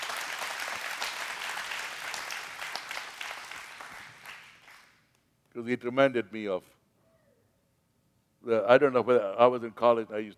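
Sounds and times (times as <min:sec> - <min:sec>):
audience applause: 0:00.0 - 0:04.9
speech: 0:05.6 - 0:06.8, 0:08.5 - 0:10.3.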